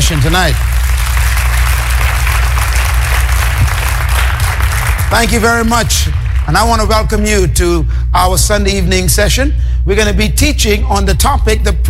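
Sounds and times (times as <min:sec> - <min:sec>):
audience applauding at a Sunday evening teaching session: 0:00.0 - 0:07.1
speech: 0:00.1 - 0:00.9, 0:05.1 - 0:11.8.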